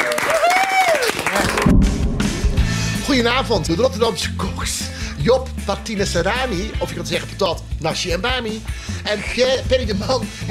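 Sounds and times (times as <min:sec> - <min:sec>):
whooping: 0:00.0 - 0:01.6
studio audience clapping and cheering: 0:00.0 - 0:02.0
low thumping beats: 0:01.5 - 0:04.8
speech: 0:03.2 - 0:10.4.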